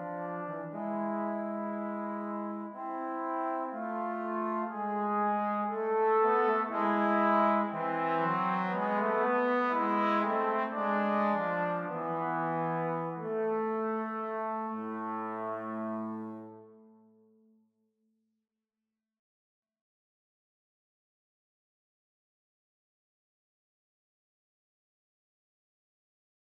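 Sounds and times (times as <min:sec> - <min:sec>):
trombone duet: 0:00.0 - 0:16.7.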